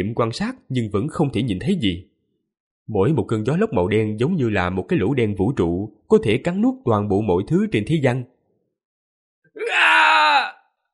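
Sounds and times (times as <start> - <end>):
speech: 0.0 - 2.1, 2.9 - 8.3
man's agonized scream: 9.5 - 10.8.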